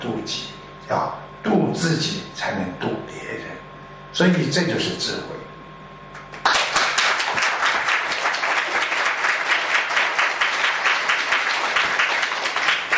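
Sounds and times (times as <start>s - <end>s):
speech: 0.0s - 3.5s, 4.2s - 5.4s
audience applause: 6.3s - 12.9s.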